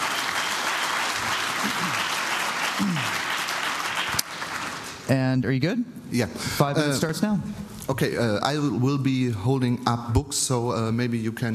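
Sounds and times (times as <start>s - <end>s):
audience applause: 0.0s - 5.1s
speech: 5.1s - 11.5s.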